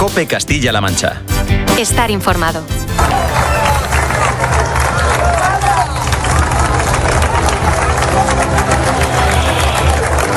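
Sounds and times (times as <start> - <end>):
speech: 0.1 - 3.1
crowd applauding police after open-air mass: 3.0 - 10.3
murmur of voices: 3.0 - 10.3.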